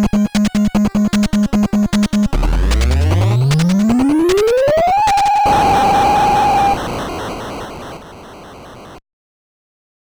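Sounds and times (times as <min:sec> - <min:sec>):
countdown: 0:00.0 - 0:06.9.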